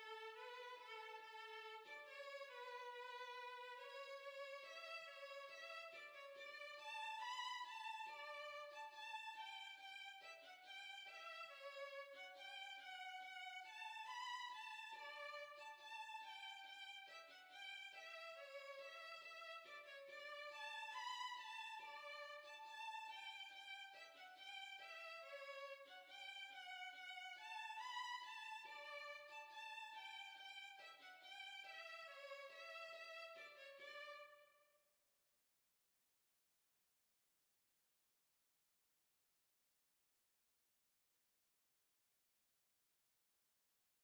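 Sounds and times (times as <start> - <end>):
violin playing a reel: 0.0 - 34.3.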